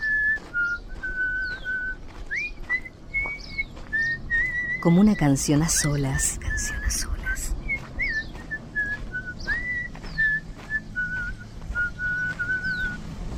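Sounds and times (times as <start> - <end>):
person whistling: 0.0 - 4.9, 7.6 - 13.0
speech: 4.8 - 7.1.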